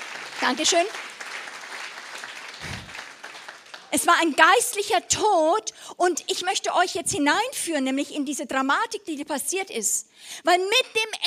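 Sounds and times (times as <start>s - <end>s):
audience clapping: 0.0s - 4.8s
speech: 0.4s - 1.2s, 3.9s - 11.2s.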